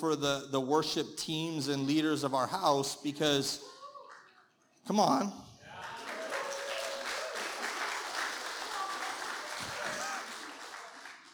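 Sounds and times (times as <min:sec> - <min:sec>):
speech: 0:00.0 - 0:03.7, 0:04.8 - 0:05.5
audience applauding: 0:05.7 - 0:11.3.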